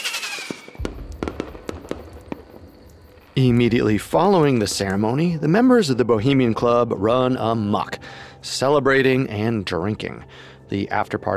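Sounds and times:
fireworks exploding above the lake: 0.0s - 5.1s
speech: 3.4s - 11.3s.

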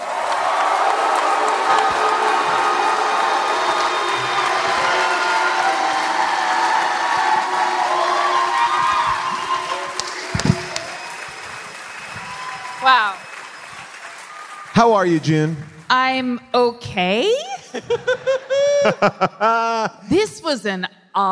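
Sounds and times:
audience cheering and applause at a live comedy show: 0.0s - 15.9s
speech: 14.8s - 21.3s
laughter: 17.6s - 20.0s.

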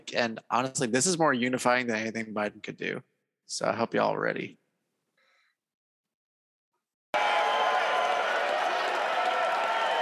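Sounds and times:
speech: 0.1s - 4.6s
concert crowd cheering: 7.2s - 9.9s.

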